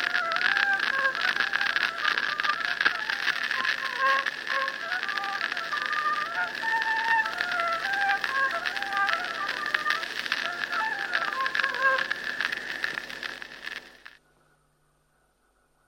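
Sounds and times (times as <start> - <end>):
folk polka from Kuusalu: 0.0 - 13.0.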